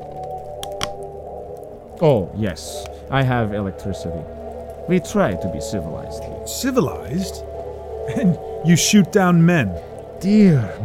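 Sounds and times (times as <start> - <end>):
nut being crushed in hand: 0.0 - 1.2
speech: 2.0 - 10.8.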